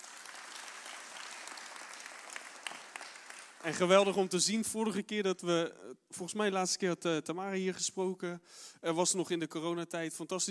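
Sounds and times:
audience applause: 0.0 - 3.9
speech: 3.6 - 10.4.

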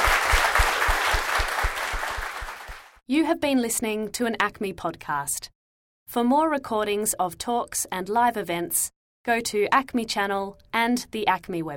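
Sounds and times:
crowd applause: 0.0 - 3.0
speech: 3.1 - 11.7.

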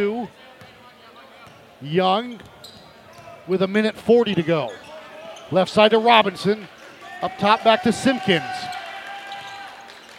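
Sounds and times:
speech: 1.8 - 2.8, 3.5 - 4.8, 5.5 - 8.6
basketball crowd cheering: 7.0 - 10.1.

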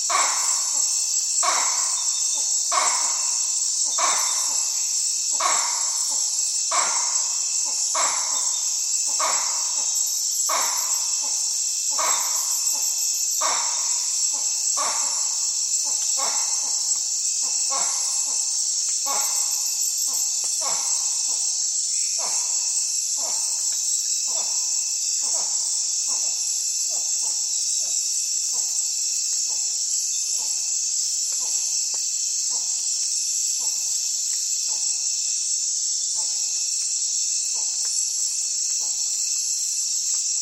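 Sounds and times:
crickets chirring: 0.0 - 40.4
high insect buzz: 0.0 - 40.4
bamboo rats calling in the Amazon rainforest: 0.1 - 0.8, 1.4 - 4.8, 5.4 - 11.4, 12.0 - 15.4, 16.0 - 16.8, 19.0 - 21.2.

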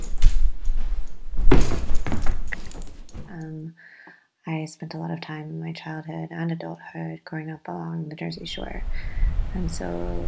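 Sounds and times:
dog collar tags jangling: 0.0 - 3.6
speech: 3.4 - 10.2.

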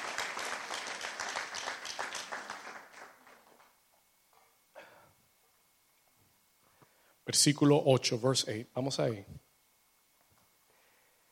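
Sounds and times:
audience applause: 0.0 - 3.8
speech: 7.3 - 9.4.

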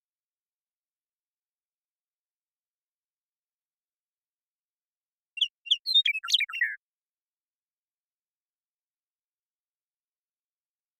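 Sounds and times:
Western meadowlark singing: 5.4 - 6.8.

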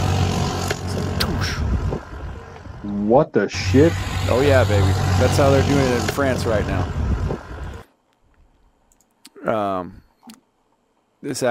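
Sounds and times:
French police four-wheeler engines roaring at a protest: 0.0 - 7.8
speech: 3.0 - 7.0, 9.4 - 10.0, 11.2 - 11.4.

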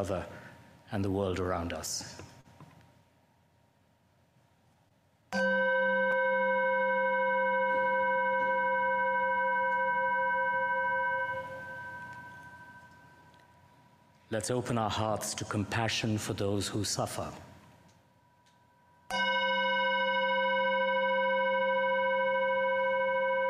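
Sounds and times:
speech: 0.0 - 2.4, 14.3 - 17.5
chime ringing: 5.3 - 14.1, 18.3 - 23.4.

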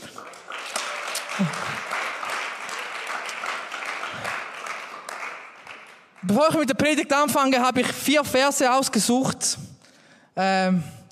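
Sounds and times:
audience applause: 0.0 - 6.3
speech: 1.4 - 1.6, 6.3 - 9.7, 10.4 - 11.0.

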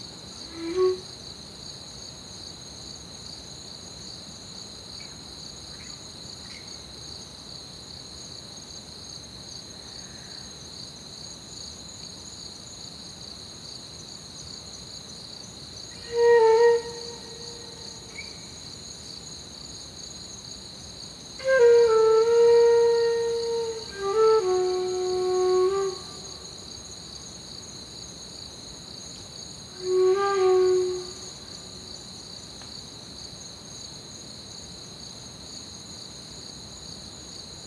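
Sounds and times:
crickets chirring: 0.0 - 3.7, 8.2 - 34.6
mid-pitched tonal calls: 16.0 - 18.2, 21.4 - 26.4, 29.8 - 31.2.

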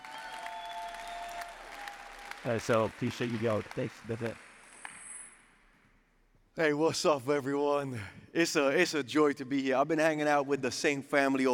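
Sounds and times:
faint audience applause welcoming a performer onstage: 0.0 - 4.8
speech: 2.4 - 4.5, 6.6 - 11.5.

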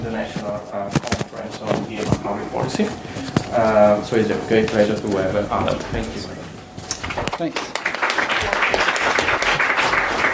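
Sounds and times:
speech: 0.0 - 6.4, 7.4 - 7.7
crowd audience applause: 7.5 - 10.3.

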